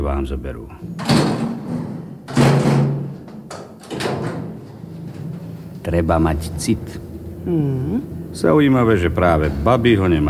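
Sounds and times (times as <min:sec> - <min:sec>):
speech: 0:00.0 - 0:01.8, 0:05.8 - 0:10.2
door knocking and rattling in the frame: 0:00.9 - 0:05.6
door being slammed shut: 0:01.0 - 0:04.8.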